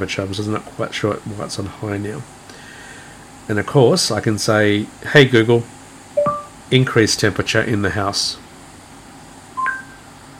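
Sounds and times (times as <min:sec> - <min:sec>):
speech: 0:00.0 - 0:02.4, 0:03.5 - 0:05.8, 0:06.7 - 0:08.4
air conditioner confirmation beeps: 0:06.1 - 0:06.6, 0:09.5 - 0:10.3.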